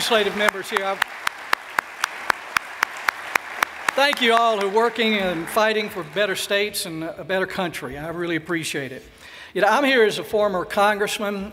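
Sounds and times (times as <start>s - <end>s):
audience applause: 0.0s - 7.0s
speech: 0.1s - 1.2s, 4.0s - 11.5s.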